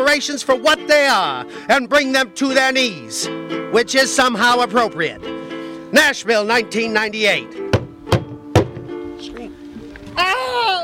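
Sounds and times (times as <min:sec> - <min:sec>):
speech: 0:00.2 - 0:07.6
heavy thuds on a door: 0:07.7 - 0:08.9.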